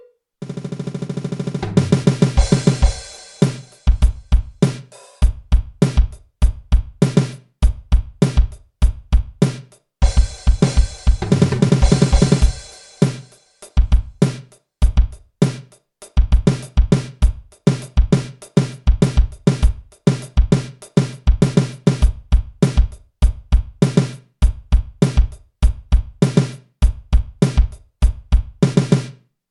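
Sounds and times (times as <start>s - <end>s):
rock fusion drum kit solo: 0.4s - 29.2s.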